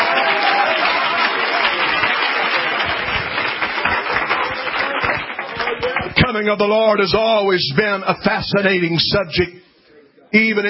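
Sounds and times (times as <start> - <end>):
audience clapping hands: 0.0 - 6.4
speech: 6.3 - 9.6, 10.3 - 10.6.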